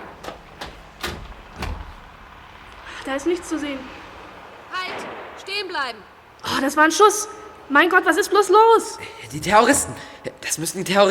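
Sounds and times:
window being opened: 0.0 - 2.8
speech: 3.1 - 4.0, 4.9 - 11.0.

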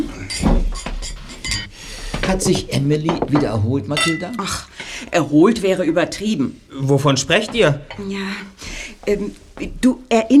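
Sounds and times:
glasses set down on a table: 0.0 - 4.6
speech: 2.3 - 10.3.

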